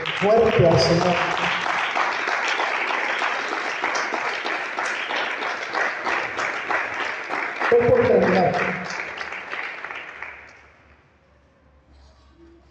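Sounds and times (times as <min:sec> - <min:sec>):
audience applause: 0:00.0 - 0:10.8
speech: 0:00.2 - 0:01.6.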